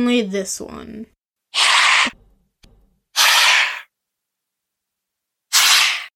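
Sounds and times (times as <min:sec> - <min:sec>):
speech: 0:00.0 - 0:02.2
adult animal hissing: 0:01.6 - 0:02.2, 0:03.2 - 0:03.9, 0:05.5 - 0:06.1.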